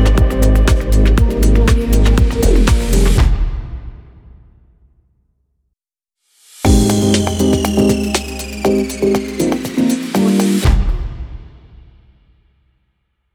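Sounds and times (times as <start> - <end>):
fashion logo music: 0.0 - 3.4, 6.6 - 11.4.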